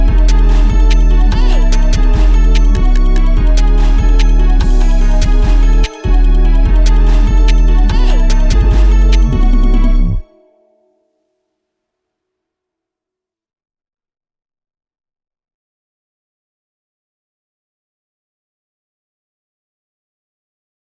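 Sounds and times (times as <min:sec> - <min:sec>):
instrumental music: 0:00.0 - 0:11.0.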